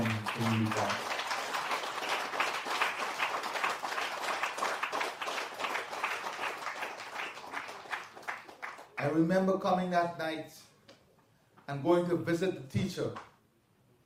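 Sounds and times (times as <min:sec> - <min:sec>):
crowd applauding: 0:00.0 - 0:09.2
speech: 0:00.4 - 0:01.1, 0:09.2 - 0:10.7, 0:11.7 - 0:13.3.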